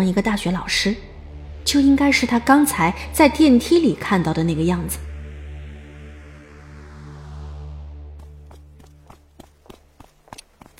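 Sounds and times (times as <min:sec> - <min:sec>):
speech: 0:00.0 - 0:05.1
sustained low droning tone: 0:00.0 - 0:10.0
footsteps of someone running down a staircase: 0:08.2 - 0:10.7.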